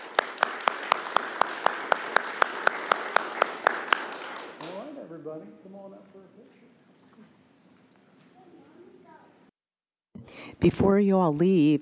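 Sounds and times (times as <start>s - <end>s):
audience applause: 0.0s - 5.0s
speech: 5.4s - 7.4s, 10.4s - 11.8s.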